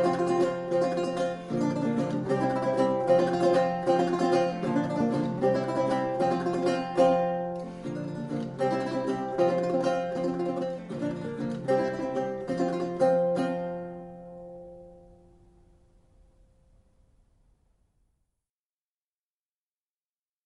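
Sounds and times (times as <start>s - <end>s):
lute music: 0.0s - 15.9s.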